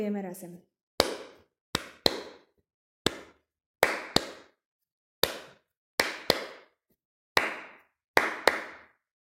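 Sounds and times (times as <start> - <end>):
hands clapping a rhythm: 1.0 - 4.6, 5.2 - 6.8, 7.4 - 9.0.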